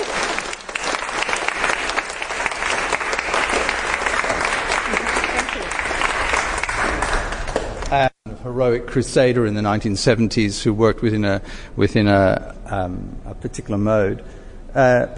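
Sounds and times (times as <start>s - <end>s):
audience applause: 0.0s - 7.9s
speech: 7.9s - 15.1s.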